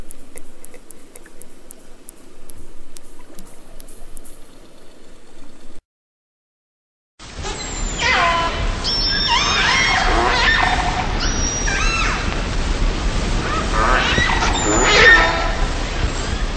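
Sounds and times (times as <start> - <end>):
orca whistles and calls in Antarctica: 7.4 - 12.4, 13.4 - 16.5.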